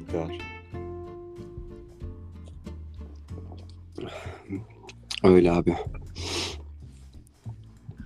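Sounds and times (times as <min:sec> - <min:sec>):
speech: 0:00.1 - 0:00.5, 0:04.1 - 0:06.3
sniffling from a nose stuffed up by a cold: 0:06.1 - 0:06.7.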